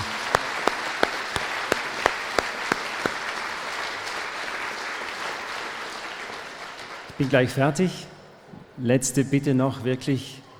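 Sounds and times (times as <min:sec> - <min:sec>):
crowd applause: 0:00.0 - 0:07.3
sharper evenly spaced claps: 0:00.0 - 0:07.4
speech: 0:07.2 - 0:08.1, 0:08.8 - 0:10.4.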